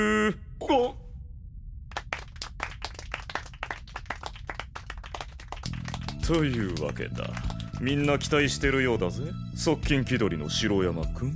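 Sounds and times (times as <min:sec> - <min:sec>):
group clapping hands: 0:01.9 - 0:08.4
speech: 0:06.3 - 0:11.3.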